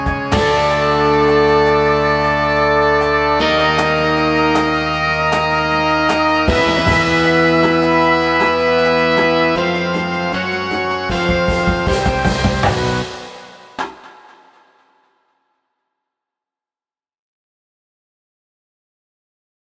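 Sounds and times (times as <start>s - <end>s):
band rumble: 0.0s - 14.2s.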